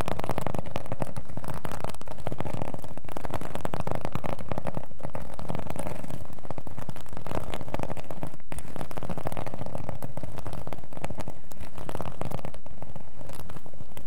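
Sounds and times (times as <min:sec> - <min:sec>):
scratching with rough crackling strokes: 0:00.0 - 0:14.0.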